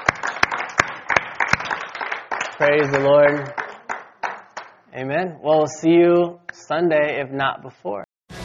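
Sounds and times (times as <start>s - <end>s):
audience applause: 0.0s - 4.7s
speech: 2.6s - 3.6s, 5.0s - 8.1s.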